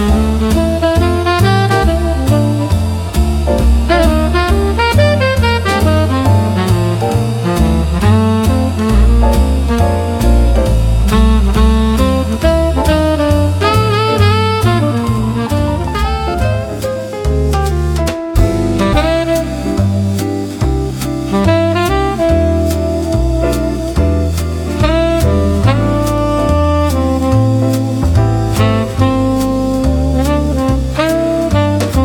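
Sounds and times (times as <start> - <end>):
jazz music in a bar: 0.0 - 32.0.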